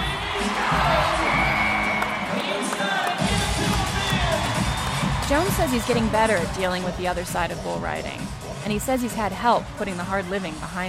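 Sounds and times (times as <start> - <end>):
rodeo arena crowd cheering wildly: 0.0 - 7.1
speech: 5.3 - 10.8.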